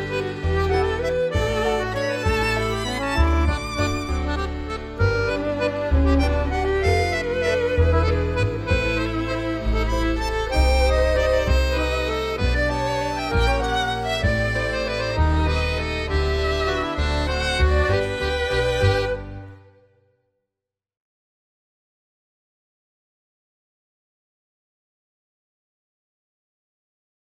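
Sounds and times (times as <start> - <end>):
waltz music: 0.0 - 19.9.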